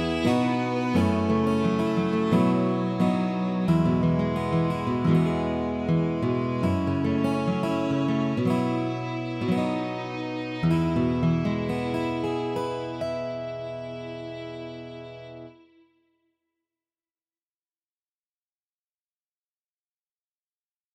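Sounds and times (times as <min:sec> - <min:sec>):
acoustic music: 0:00.0 - 0:15.8.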